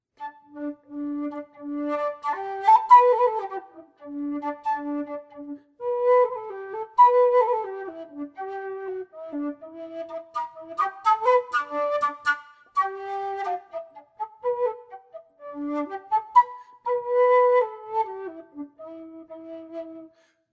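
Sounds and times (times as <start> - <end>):
free improvisation music: 0.0 - 20.4.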